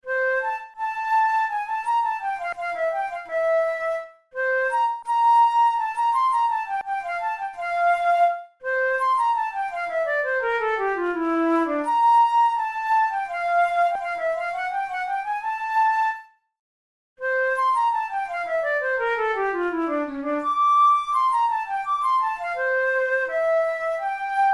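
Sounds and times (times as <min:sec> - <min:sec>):
studies for the Boehm flute: 0:00.0 - 0:16.4, 0:17.2 - 0:24.5.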